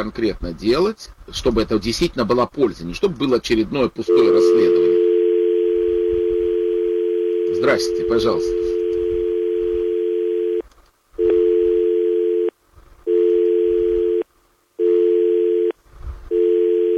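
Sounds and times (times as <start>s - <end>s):
speech: 0.0s - 4.9s, 7.6s - 8.6s
telephone dial tone: 4.1s - 10.6s, 11.2s - 12.5s, 13.1s - 14.2s, 14.8s - 16.9s
faint low rumble: 4.1s - 16.9s.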